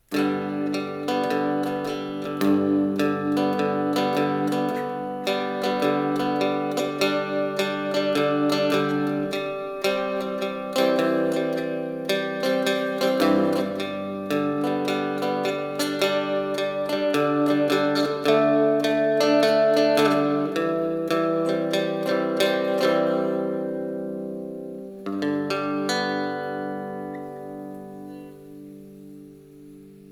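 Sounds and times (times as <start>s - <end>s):
blues music in G: 0.0s - 30.0s.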